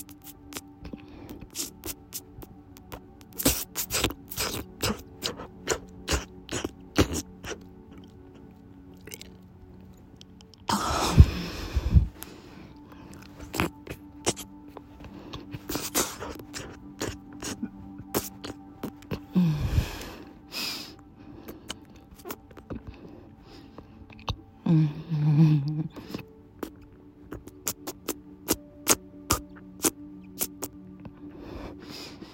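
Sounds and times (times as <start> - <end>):
spit sounds: 0.0 - 8.4, 13.1 - 19.2, 21.5 - 23.0, 25.7 - 30.8
throat noises: 0.0 - 9.3, 10.3 - 12.4, 13.1 - 20.2, 23.8 - 30.8
mouth noises: 0.0 - 9.4, 10.2 - 31.1.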